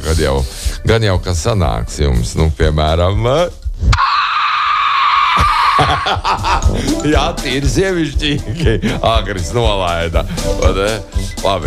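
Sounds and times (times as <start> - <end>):
speech: 0.1 - 4.0, 5.4 - 11.6
man squealing in a squealing contest: 3.9 - 6.7
laughter: 5.3 - 10.4.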